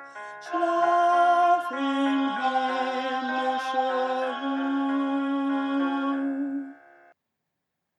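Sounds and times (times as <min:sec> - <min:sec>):
folk choir alto singing a Christmas carol: 0:00.5 - 0:06.8.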